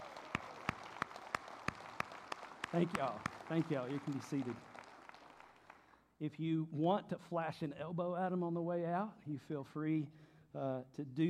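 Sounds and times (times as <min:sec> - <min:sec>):
congregation clapping in praise: 0:00.0 - 0:06.0
faint hiss: 0:00.4 - 0:11.2
speech: 0:02.7 - 0:04.7, 0:06.2 - 0:11.2.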